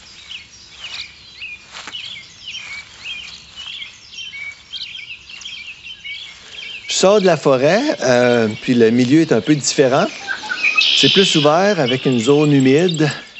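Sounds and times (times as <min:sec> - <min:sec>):
soft rustling: 0:00.0 - 0:10.1
red songbird with black wings singing: 0:00.0 - 0:13.3
speech: 0:07.0 - 0:10.3, 0:11.0 - 0:13.2.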